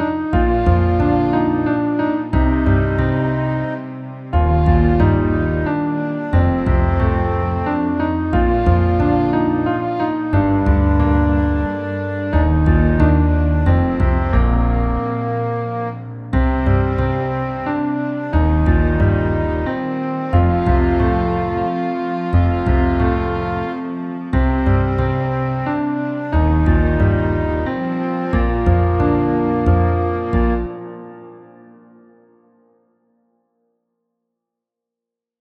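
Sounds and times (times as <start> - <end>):
lullaby music: 0.2 - 32.0.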